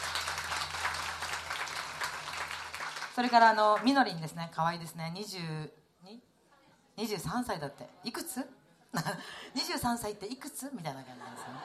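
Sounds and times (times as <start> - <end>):
audience applauding: 0.0 - 4.0
speech: 3.2 - 6.3, 7.0 - 11.6
laughter: 11.1 - 11.6.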